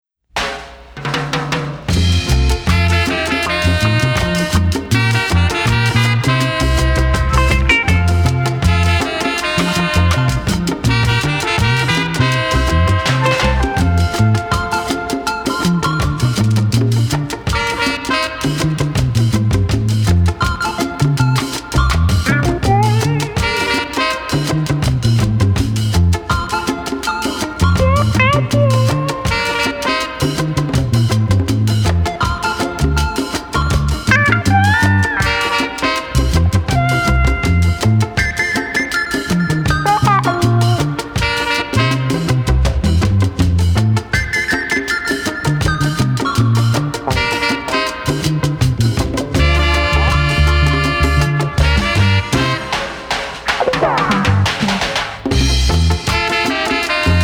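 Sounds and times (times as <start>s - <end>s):
African reggae music: 0.4s - 57.2s.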